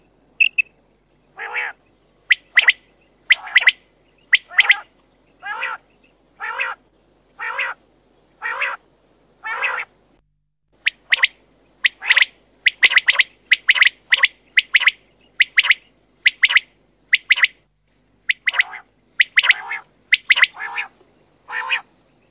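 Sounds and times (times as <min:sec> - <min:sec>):
Common quail calling: 0:01.4 - 0:06.8, 0:07.4 - 0:07.8, 0:08.4 - 0:08.8, 0:09.4 - 0:09.9, 0:10.8 - 0:17.6, 0:18.3 - 0:21.9.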